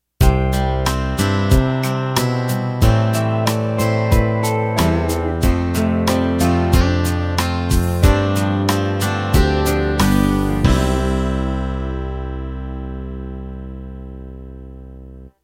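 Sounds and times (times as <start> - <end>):
country ballad ending: 0.2 - 15.0.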